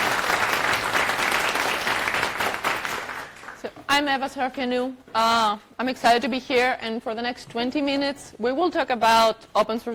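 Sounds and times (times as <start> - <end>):
audience applauding to welcome a speaker at a tech talk: 0.0 - 3.6
speech: 4.0 - 9.9.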